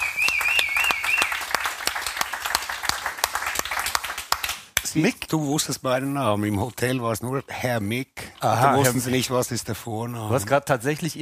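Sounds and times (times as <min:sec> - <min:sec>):
audience applause: 0:00.0 - 0:04.7
speech: 0:04.9 - 0:11.2.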